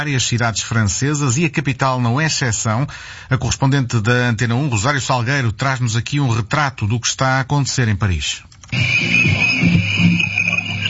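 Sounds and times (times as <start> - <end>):
speech: 0.0 - 9.9
police whistles blowing at street protest in Paris: 8.7 - 10.8.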